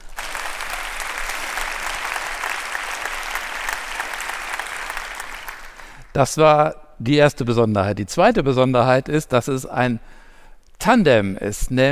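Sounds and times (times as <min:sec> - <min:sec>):
live audience applause: 0:00.0 - 0:06.1
speech: 0:06.2 - 0:10.2, 0:10.8 - 0:11.9.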